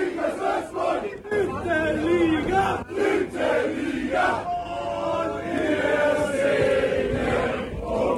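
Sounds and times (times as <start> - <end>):
football fans cheering and chanting after a promotion playoff match: 0.0 - 8.1.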